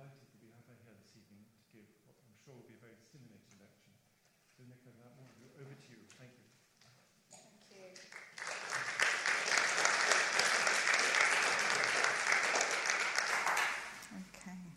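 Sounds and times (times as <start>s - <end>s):
speech: 4.6s - 6.5s
audience applause: 8.0s - 14.1s.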